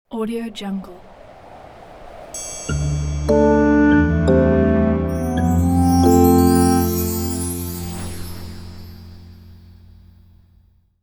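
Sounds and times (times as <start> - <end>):
Christmas music intro: 2.4 - 9.8.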